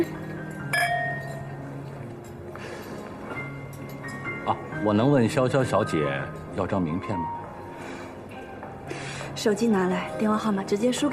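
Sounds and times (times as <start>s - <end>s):
glasses clinking in a toast: 0.0s - 4.6s
speech: 4.5s - 7.4s, 9.4s - 11.1s.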